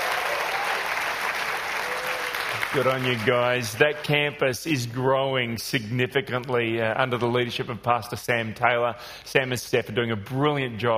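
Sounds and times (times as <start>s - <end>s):
congregation cheering: 0.0s - 3.6s
speech: 2.5s - 10.9s.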